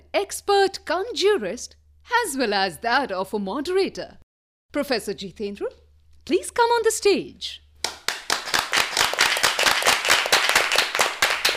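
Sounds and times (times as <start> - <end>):
speech: 0.1 - 7.6
students clapping: 7.8 - 11.5.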